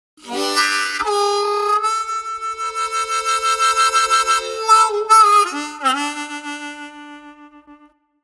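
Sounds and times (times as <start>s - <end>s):
harp: 0.2s - 7.3s.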